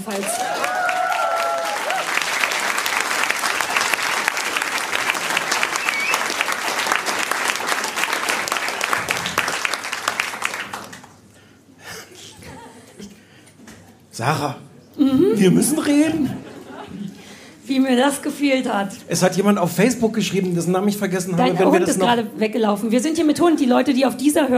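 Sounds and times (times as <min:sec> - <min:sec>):
speech: 0:00.0 - 0:00.5, 0:14.2 - 0:16.4, 0:17.8 - 0:24.5
crowd audience applause: 0:00.0 - 0:11.3
laughter: 0:12.0 - 0:13.1, 0:15.1 - 0:17.2.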